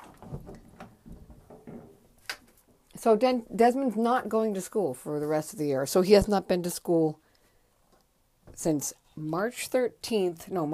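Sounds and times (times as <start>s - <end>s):
footsteps on creaky wooden floor: 0.0s - 2.2s
speech: 3.0s - 7.2s, 8.6s - 10.7s.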